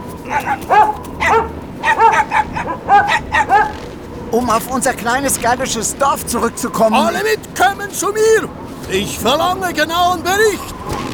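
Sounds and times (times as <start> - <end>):
speech: 0.3 - 1.5, 4.4 - 10.8
small dog yapping and whining: 0.3 - 3.8.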